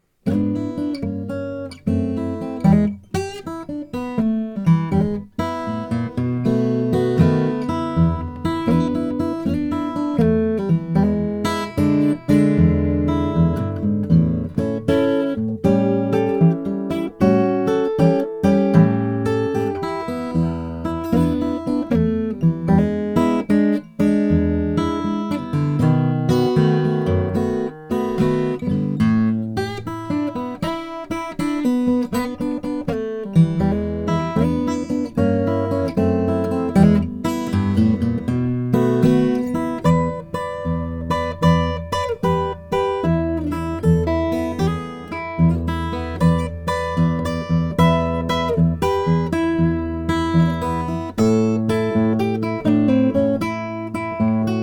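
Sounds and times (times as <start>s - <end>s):
Greven 0000 Brazilian rosewood guitar: 0.0s - 54.6s.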